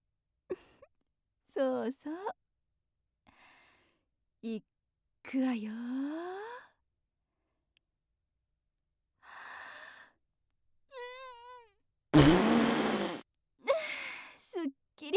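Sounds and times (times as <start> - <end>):
speech: 1.5 - 2.4, 4.4 - 6.3, 14.6 - 15.1
loud rough fart: 12.2 - 13.2.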